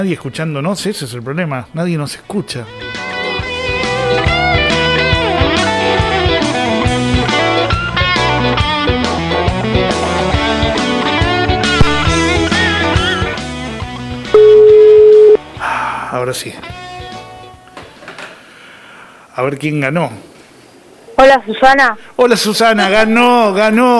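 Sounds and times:
speech: 0.0s - 3.1s, 16.2s - 16.8s, 19.4s - 20.3s, 21.2s - 23.9s
busy music: 1.8s - 15.9s
steady single-pitched telephone line tone during dialing: 14.4s - 15.4s.

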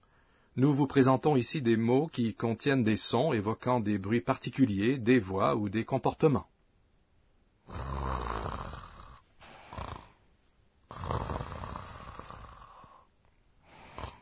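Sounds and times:
speech: 0.6s - 6.5s, 7.7s - 8.0s
person snoring in deep sleep: 7.6s - 10.2s, 10.9s - 14.1s.

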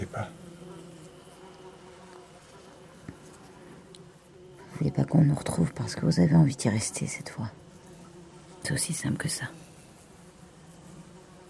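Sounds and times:
flies buzzing: 0.0s - 11.4s
speech: 0.1s - 0.4s, 4.8s - 7.6s, 8.7s - 9.7s.

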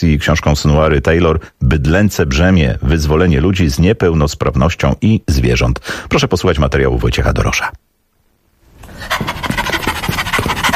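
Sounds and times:
speech: 0.0s - 7.9s
heavy panting breaths: 8.8s - 10.7s.

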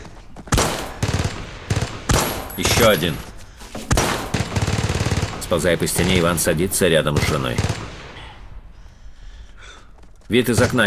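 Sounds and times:
gunfire in a wartime fight at a house: 0.5s - 3.3s, 3.9s - 8.6s, 10.4s - 10.8s
speech: 2.6s - 3.3s, 5.5s - 7.8s, 10.3s - 10.8s.

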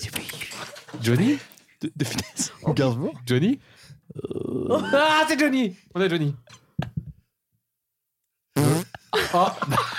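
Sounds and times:
speech: 1.0s - 6.9s, 9.2s - 9.9s
fart: 8.6s - 9.0s
laughter: 9.2s - 9.9s.

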